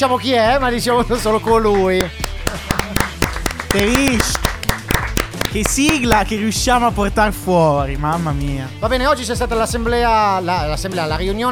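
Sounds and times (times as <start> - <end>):
speech: 0.0 - 3.1, 3.7 - 4.8, 5.5 - 11.5
clapping: 1.7 - 6.3
laughter: 2.4 - 4.4.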